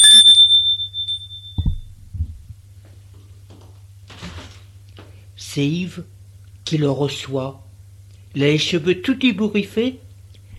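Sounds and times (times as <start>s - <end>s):
doorbell with bright high metallic chime: 0.0s - 1.8s
soft low thuds: 1.6s - 2.7s
speech: 5.5s - 7.6s, 8.4s - 10.0s.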